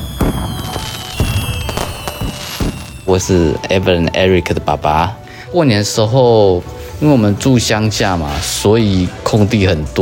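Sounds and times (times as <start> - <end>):
firecrackers exploding: 0.0 - 3.6
speech: 3.1 - 10.0.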